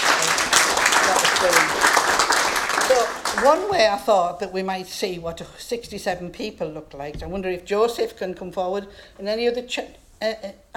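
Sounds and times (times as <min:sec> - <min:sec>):
audience applause: 0:00.0 - 0:04.0
speech: 0:01.4 - 0:01.8, 0:02.9 - 0:10.7.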